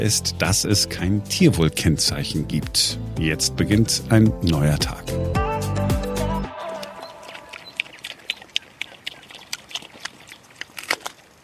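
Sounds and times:
speech: 0.0s - 5.4s
pigs munching apples in a meadow: 6.7s - 11.4s
snuffling and smacking: 6.8s - 11.4s.

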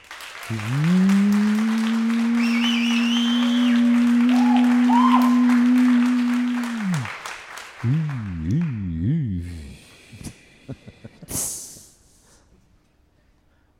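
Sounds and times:
audience applause: 0.0s - 8.7s.

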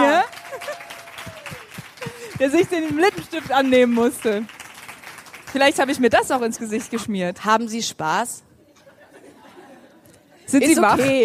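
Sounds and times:
laughter: 0.0s - 1.4s, 8.7s - 11.2s
audience applause: 0.0s - 6.5s
speech: 2.4s - 4.6s, 5.5s - 8.5s, 10.5s - 11.2s.

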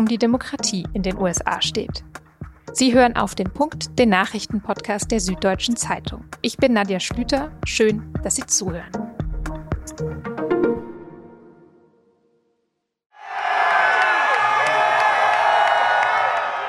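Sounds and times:
speech: 0.0s - 9.0s, 9.9s - 10.4s
voters cheering in Pennsylvania: 13.2s - 16.6s.

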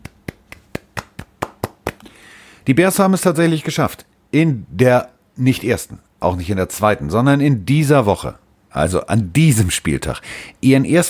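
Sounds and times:
single person clapping: 0.0s - 2.1s
speech: 2.6s - 11.0s.

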